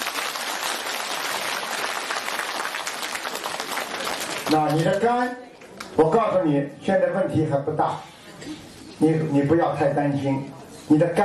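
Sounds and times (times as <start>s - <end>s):
audience applause: 0.0s - 4.9s
speech: 4.5s - 11.2s.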